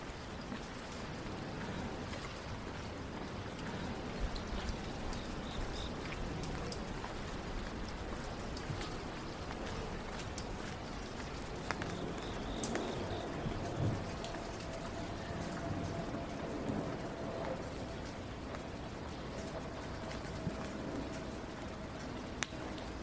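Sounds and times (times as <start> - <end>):
rain downtown at night: 0.0 - 23.0
wet traffic: 0.0 - 23.0.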